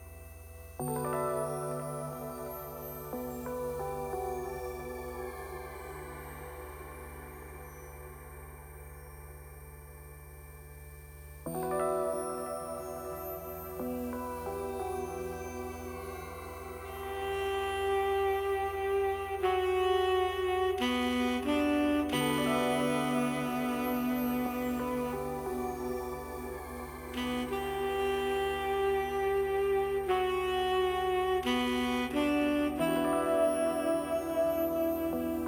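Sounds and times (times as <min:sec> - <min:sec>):
space saxophone ambience: 0:00.0 - 0:35.4.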